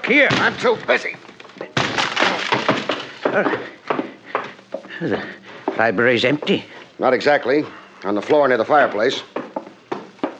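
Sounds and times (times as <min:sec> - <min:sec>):
speech: 0:00.1 - 0:01.3, 0:03.3 - 0:03.7, 0:05.0 - 0:09.3
wooden library door being forced open: 0:01.8 - 0:03.4.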